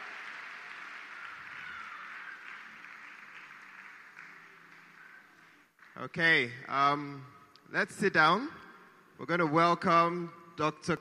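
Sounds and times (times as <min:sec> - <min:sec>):
steady crowd applause: 0:00.0 - 0:06.1
speech: 0:06.0 - 0:08.6, 0:09.2 - 0:10.9.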